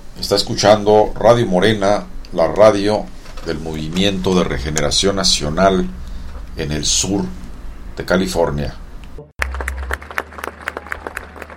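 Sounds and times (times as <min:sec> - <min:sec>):
low hum: 0:00.0 - 0:11.5
speech: 0:00.2 - 0:06.0, 0:06.6 - 0:07.4, 0:08.0 - 0:08.8
audience applauding at a cueca and tonada festival in Valparaíso: 0:09.4 - 0:11.5.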